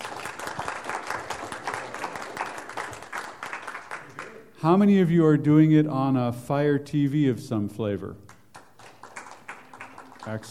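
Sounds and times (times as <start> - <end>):
audience applause: 0.0 - 4.5, 8.6 - 10.5
speech: 4.6 - 8.2, 10.3 - 10.5.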